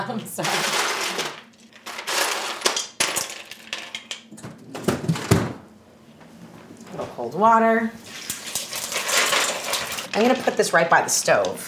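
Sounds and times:
speech: 0:00.1 - 0:00.9, 0:07.2 - 0:08.1, 0:10.2 - 0:11.6
ice cubes clattering out of a freezer: 0:00.4 - 0:04.2, 0:08.2 - 0:10.6.

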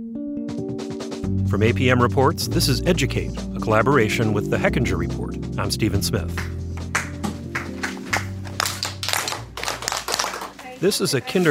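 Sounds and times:
speech: 0:01.5 - 0:06.6, 0:10.8 - 0:11.4
teacher clapping hands for attention: 0:06.3 - 0:10.8.

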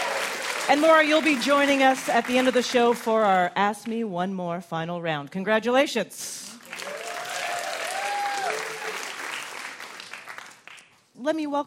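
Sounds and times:
audience applause for a performer on a live puzzle game show: 0:00.0 - 0:02.9, 0:06.6 - 0:10.8
speech: 0:00.7 - 0:06.8, 0:11.2 - 0:11.6.

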